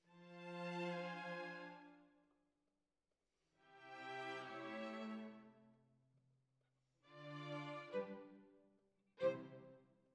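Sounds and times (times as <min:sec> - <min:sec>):
violins: 0:00.1 - 0:01.9, 0:03.7 - 0:05.5, 0:07.1 - 0:08.5, 0:09.2 - 0:09.8.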